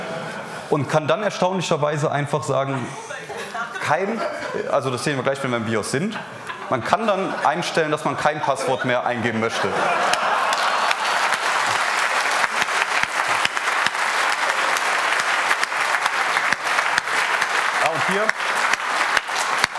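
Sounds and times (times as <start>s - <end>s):
speech: 0.7s - 3.1s, 3.9s - 10.2s
laughter: 2.7s - 5.0s, 6.0s - 18.7s
audience clapping: 9.8s - 19.7s.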